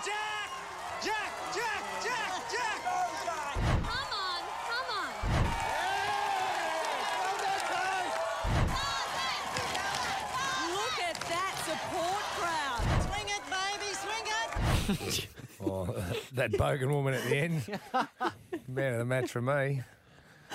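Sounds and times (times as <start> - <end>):
family members screaming and yelling at a football match: 0.0 - 14.9
steady football crowd roar: 0.0 - 15.0
loud thuds or bursts: 3.5 - 4.1, 5.2 - 5.7, 8.4 - 9.0, 12.8 - 13.4
laughter: 14.5 - 19.8
speech: 14.9 - 20.0.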